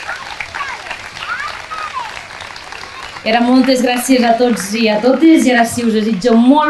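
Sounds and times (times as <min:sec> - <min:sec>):
voices and whoops: 0:00.0 - 0:03.3
audience applause: 0:00.0 - 0:06.6
speech: 0:03.2 - 0:06.6.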